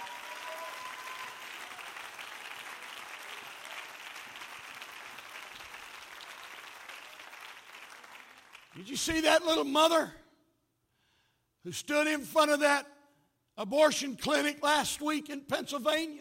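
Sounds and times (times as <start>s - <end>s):
audience clapping hands: 0.0s - 9.4s
speech: 8.8s - 10.2s, 11.6s - 12.9s, 13.6s - 16.2s.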